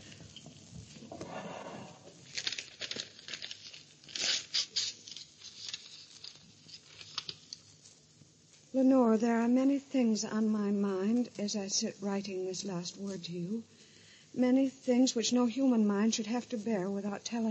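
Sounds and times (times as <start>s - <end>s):
papers crinkling and rustling as they are handled: 2.1s - 7.9s
sealed envelope torn open in a radio mystery drama: 2.2s - 7.8s
speech: 8.8s - 13.8s, 14.4s - 17.4s.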